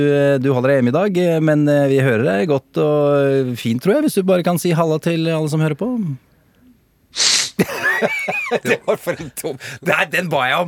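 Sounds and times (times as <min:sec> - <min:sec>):
speech: 0:00.0 - 0:06.3, 0:07.1 - 0:10.6
person sniffling from a cold: 0:07.2 - 0:07.7
laughter: 0:07.6 - 0:09.9.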